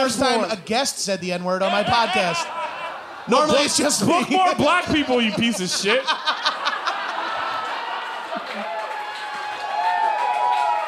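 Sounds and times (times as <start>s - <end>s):
speech: 0.0s - 6.4s
laughter: 1.6s - 9.0s
audience cheering: 1.6s - 10.8s
audience clapping: 6.9s - 10.8s.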